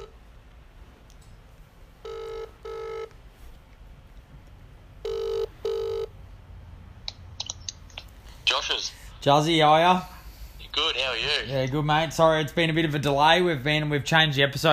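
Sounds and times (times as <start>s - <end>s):
low hum: 0.0s - 14.7s
electronic ringback tones of an outgoing phone call: 2.0s - 3.1s, 5.0s - 6.1s
speech: 8.6s - 10.1s, 10.8s - 14.7s.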